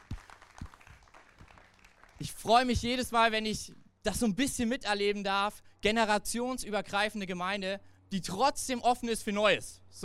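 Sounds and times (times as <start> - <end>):
audience applause: 0.0 - 2.3
speech: 2.2 - 10.0.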